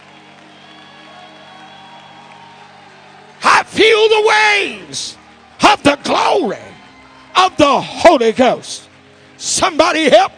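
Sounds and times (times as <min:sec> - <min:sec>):
audience clapping: 0:00.0 - 0:07.6
speech: 0:03.7 - 0:05.2, 0:05.8 - 0:06.7, 0:07.4 - 0:10.3.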